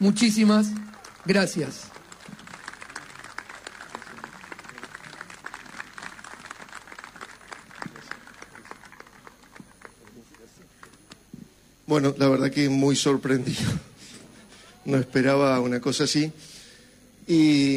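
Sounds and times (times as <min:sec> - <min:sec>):
speech: 0:00.0 - 0:02.0, 0:11.9 - 0:13.9, 0:14.9 - 0:16.5, 0:17.3 - 0:17.7
audience applause: 0:00.2 - 0:11.1.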